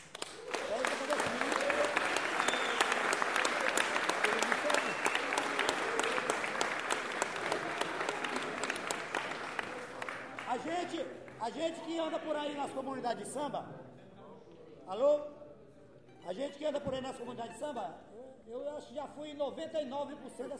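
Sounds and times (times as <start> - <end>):
audience applause: 0.0 - 11.4
speech: 11.7 - 13.9, 14.9 - 15.3, 16.3 - 20.5.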